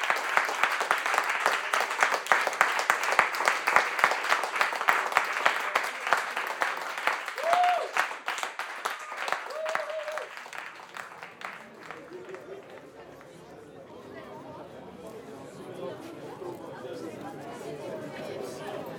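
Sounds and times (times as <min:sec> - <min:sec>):
round of applause: 0:00.0 - 0:13.5.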